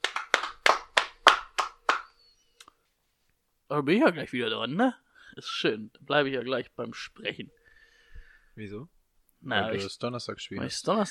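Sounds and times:
hand clapping applause: 0.0s - 2.2s
speech: 3.7s - 7.6s, 8.6s - 11.0s.

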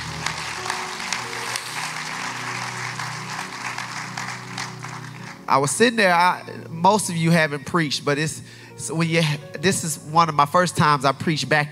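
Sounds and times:
audience applause: 0.0s - 5.5s
speech: 5.5s - 11.6s.

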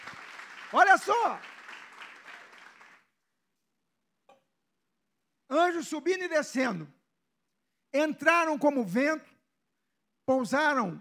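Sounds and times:
audience applause: 0.0s - 3.1s
speech: 0.7s - 1.5s, 5.5s - 7.0s, 7.9s - 9.3s, 10.3s - 10.9s.

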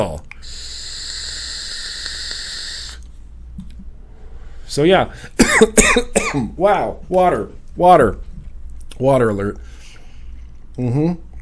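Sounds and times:
vape device firing, vapor hiss: 0.3s - 3.1s
speech: 4.8s - 8.3s, 9.0s - 9.7s, 10.8s - 11.3s.

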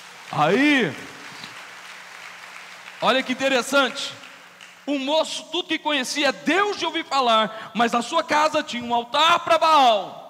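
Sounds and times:
audience applauding: 0.0s - 5.0s
speech: 0.3s - 1.1s, 3.0s - 4.2s, 4.8s - 10.2s.

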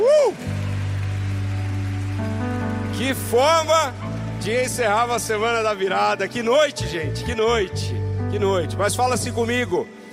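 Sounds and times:
audience applauding: 0.0s - 6.5s
sustained keyboard chords: 1.0s - 9.9s
speech: 3.1s - 10.0s.

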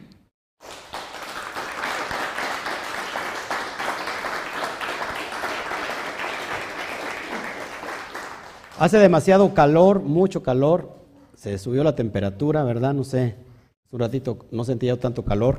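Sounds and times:
crowd clapping: 0.6s - 9.3s
speech: 8.8s - 15.5s.

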